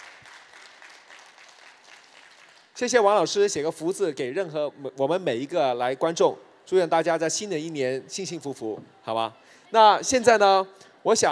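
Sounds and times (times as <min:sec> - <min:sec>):
crowd audience applause: 0:00.0 - 0:02.8
speech: 0:02.8 - 0:11.3.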